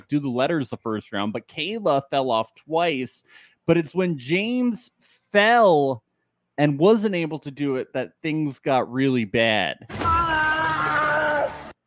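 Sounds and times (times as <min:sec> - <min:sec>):
speech: 0:00.1 - 0:06.0, 0:06.6 - 0:10.0
Wilhelm scream sound effect: 0:09.9 - 0:11.7.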